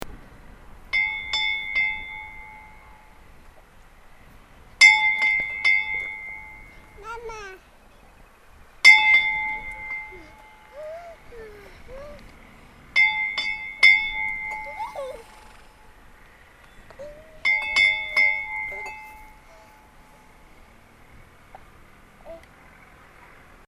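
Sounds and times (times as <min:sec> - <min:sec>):
small church bells of Gufudalskirkja: 0:00.9 - 0:03.2, 0:04.8 - 0:06.9, 0:08.8 - 0:10.8, 0:13.0 - 0:14.9, 0:17.4 - 0:20.1.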